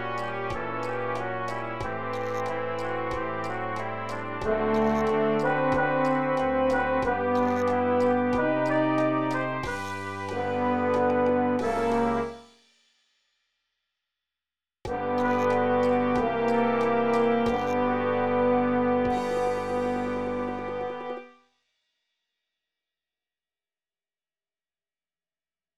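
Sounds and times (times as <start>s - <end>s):
brass quintet playing: 0.0s - 12.4s, 14.9s - 21.3s.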